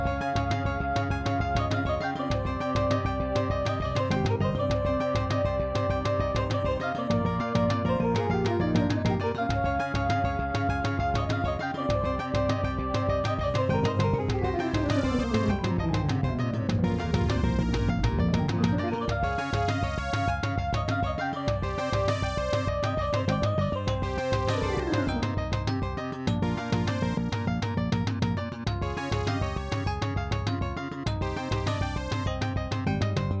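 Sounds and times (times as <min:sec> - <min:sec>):
Ensoniq Soundscape Elite soundcard test intro music: 0:00.0 - 0:33.3.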